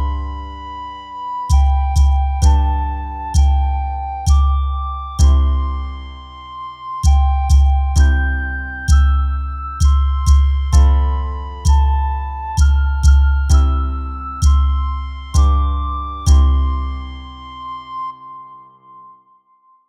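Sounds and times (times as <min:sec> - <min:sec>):
percussion: 0:01.5 - 0:06.3, 0:07.0 - 0:17.3.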